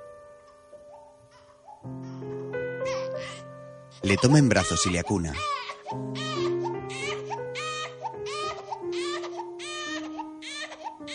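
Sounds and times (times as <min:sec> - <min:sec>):
sustained low musical tones: 0:00.0 - 0:11.1
infant crying: 0:00.9 - 0:11.1
speech: 0:04.0 - 0:06.1.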